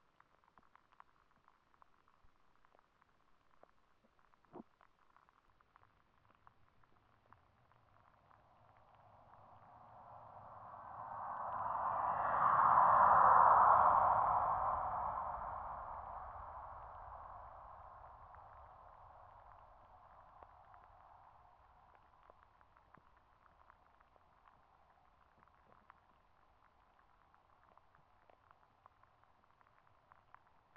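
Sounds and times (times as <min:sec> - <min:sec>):
airplane noise: 0:07.3 - 0:22.5.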